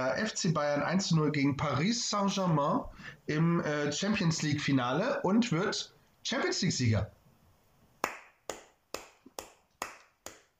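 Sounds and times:
speech: 0.0 - 7.2
sharp hand claps: 8.0 - 10.5.

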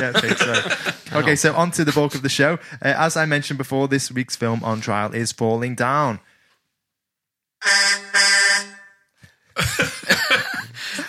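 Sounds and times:
laughter: 0.0 - 2.3, 9.6 - 11.0
speech: 0.0 - 6.3, 7.6 - 8.3, 9.7 - 10.0
car horns honking in a traffic jam: 7.6 - 9.0.

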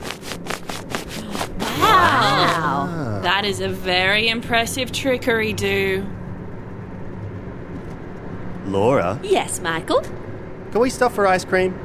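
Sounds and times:
brushing swish: 0.0 - 2.6
rubbing belly strokes as a party trick: 0.0 - 2.6
laughter: 1.2 - 3.3
speech: 3.4 - 6.2, 8.7 - 11.8.

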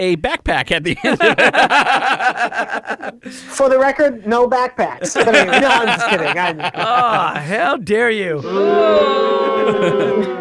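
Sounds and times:
speech: 0.0 - 10.3
laughter: 0.9 - 3.3, 5.0 - 7.8, 8.4 - 10.3
audience booing: 8.4 - 10.3.

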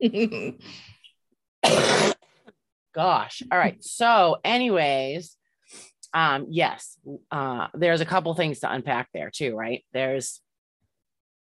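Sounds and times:
speech: 0.0 - 0.9, 1.6 - 2.2, 2.9 - 10.4
person coughing: 1.6 - 2.2.

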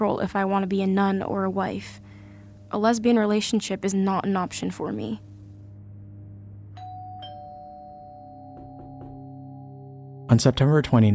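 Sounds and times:
speech: 0.0 - 2.0, 2.7 - 5.3, 10.3 - 11.1
steady low hum: 0.0 - 11.1
two-tone doorbell chime at the front door: 6.8 - 10.8.

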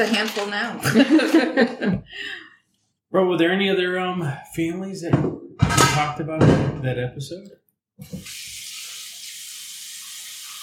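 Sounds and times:
speech: 0.0 - 2.4, 3.1 - 8.4
laughter: 0.8 - 2.2
tap water running while washing dishes: 8.0 - 10.6.

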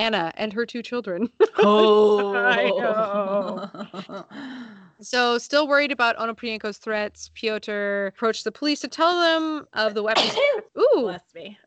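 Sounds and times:
speech: 0.0 - 11.6
laughter: 1.4 - 4.4
sneeze: 10.1 - 10.6.

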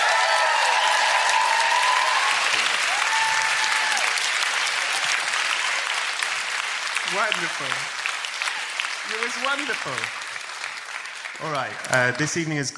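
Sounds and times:
audience round of applause: 0.0 - 12.7
speech: 7.1 - 8.0, 9.1 - 10.2, 11.4 - 12.7.

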